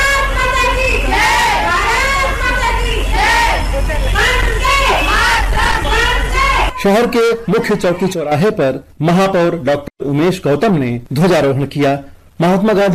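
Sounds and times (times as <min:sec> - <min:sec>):
crowd chanting patriotic slogans: 0:00.0 - 0:06.8
speech: 0:06.8 - 0:12.9.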